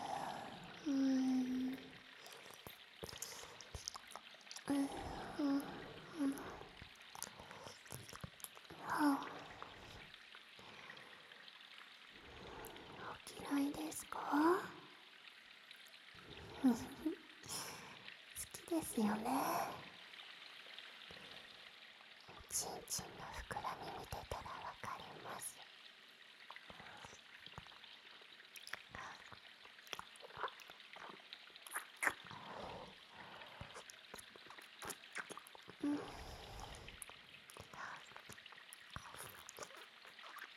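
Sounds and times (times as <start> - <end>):
water dripping: 0.0 - 40.5
ear licking: 28.6 - 32.6, 33.2 - 35.8, 36.9 - 40.5.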